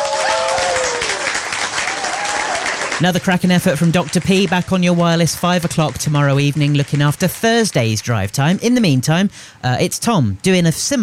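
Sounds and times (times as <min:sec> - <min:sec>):
audience applause: 0:00.0 - 0:08.2
speech: 0:03.0 - 0:11.0.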